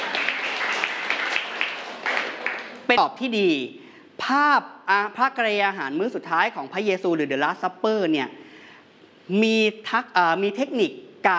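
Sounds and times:
audience applause for a classmate: 0:00.0 - 0:02.9
speech: 0:02.9 - 0:08.4, 0:09.3 - 0:11.3.

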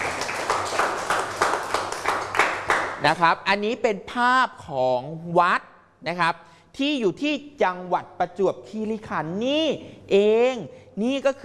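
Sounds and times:
classmates clapping for a student in a classroom: 0:00.0 - 0:03.2
speech: 0:03.0 - 0:11.4.

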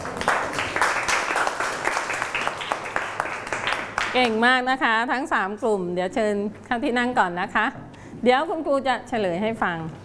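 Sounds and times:
clapping for a group: 0:00.0 - 0:04.5
speech: 0:04.2 - 0:10.0.

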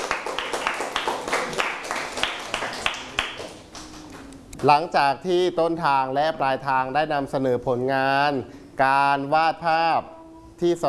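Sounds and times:
people clapping for a classmate: 0:00.0 - 0:04.7
speech: 0:04.6 - 0:10.8.

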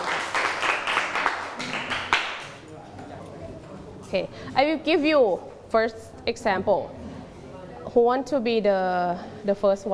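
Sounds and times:
audience clapping: 0:00.0 - 0:02.6
speech: 0:04.1 - 0:07.0, 0:07.9 - 0:09.9.

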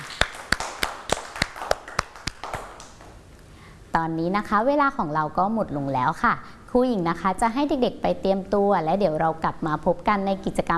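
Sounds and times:
children clapping for themselves: 0:00.0 - 0:03.2
speech: 0:04.0 - 0:10.7.

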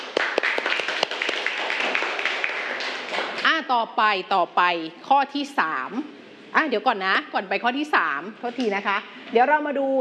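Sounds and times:
classroom students applauding a classmate: 0:00.0 - 0:03.4
speech: 0:03.6 - 0:10.0.

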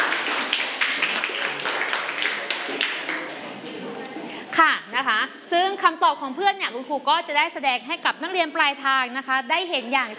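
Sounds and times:
class applauding: 0:00.0 - 0:03.6
speech: 0:05.8 - 0:10.1.

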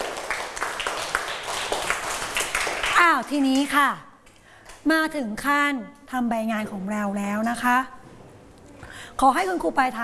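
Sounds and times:
children in a classroom clapping for a classmate: 0:00.0 - 0:03.8
steady wash of noise: 0:00.0 - 0:10.0
speech: 0:03.1 - 0:04.1, 0:04.8 - 0:08.0, 0:09.2 - 0:10.0.

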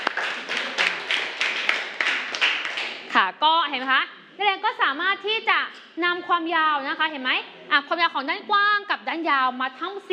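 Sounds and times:
classroom clapping: 0:00.0 - 0:03.3
speech: 0:03.2 - 0:10.1.

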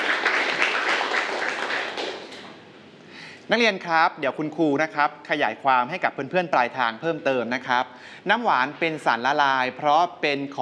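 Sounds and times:
students clapping for a classmate: 0:00.0 - 0:02.6
speech: 0:03.5 - 0:10.6.

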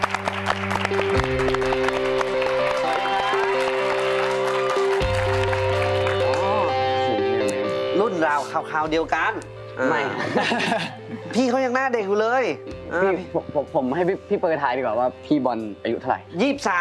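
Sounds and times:
audience applause welcoming a guest: 0:00.0 - 0:06.9
sustained tonal music with a low bass line: 0:00.0 - 0:16.7
speech: 0:08.2 - 0:16.7
laughter: 0:10.0 - 0:11.5.

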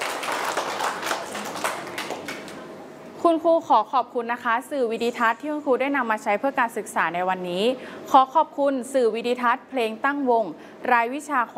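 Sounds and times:
children clapping for themselves: 0:00.0 - 0:02.6
speech: 0:03.2 - 0:11.5.

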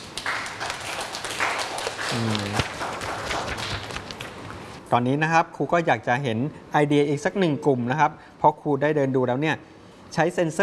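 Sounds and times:
classroom of people clapping: 0:00.0 - 0:04.8
speech: 0:02.1 - 0:02.8, 0:04.9 - 0:10.6.

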